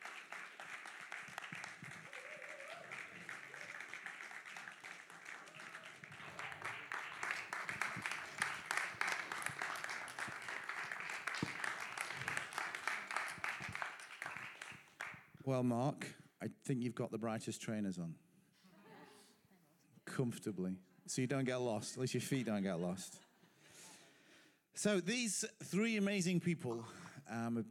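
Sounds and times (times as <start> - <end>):
audience clapping for people walking on stage: 0.0 - 15.3
speech: 15.5 - 18.2, 20.2 - 23.2, 24.8 - 27.6.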